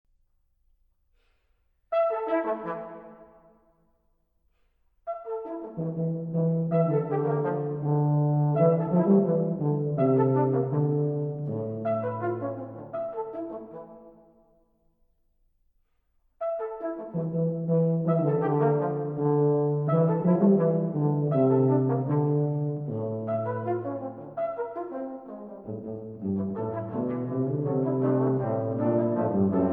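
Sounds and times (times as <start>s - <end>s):
Sephardic quintet playing: 5.1s - 14.1s, 16.4s - 29.7s.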